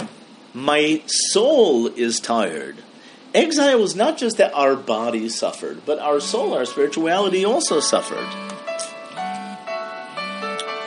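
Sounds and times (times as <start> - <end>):
speech: 0.5 - 8.7
electronic alarm melody: 6.0 - 10.8.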